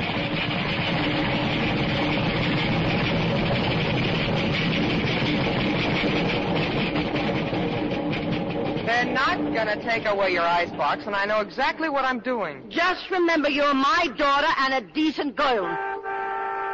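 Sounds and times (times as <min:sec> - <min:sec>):
express train rushing past: 0:00.0 - 0:13.2
speech: 0:09.6 - 0:15.9.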